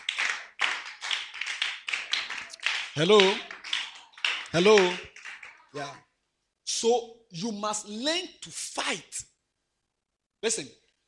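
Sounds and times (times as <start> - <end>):
crowd clapping in a steady rhythm: 0.0 - 5.9
speech: 3.0 - 3.5, 4.5 - 5.1, 5.7 - 6.1, 6.7 - 9.3, 10.4 - 10.8.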